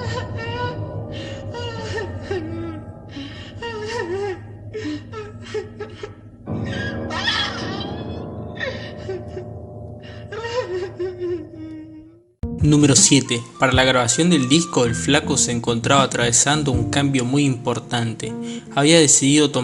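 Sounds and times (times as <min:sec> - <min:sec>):
person crying: 0:00.0 - 0:09.6, 0:10.2 - 0:12.2, 0:13.7 - 0:15.2
speech: 0:12.6 - 0:19.6.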